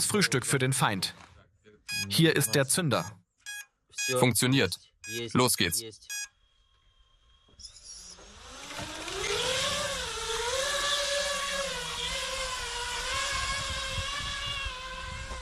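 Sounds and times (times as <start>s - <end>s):
speech: 0.0s - 1.3s, 2.0s - 3.2s, 4.1s - 6.2s
drone motors whirring in flight: 6.5s - 15.4s.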